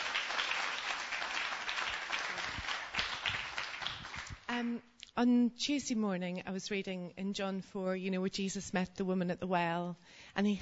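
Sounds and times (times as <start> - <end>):
audience applause: 0.0 - 4.4
speech: 4.6 - 10.6.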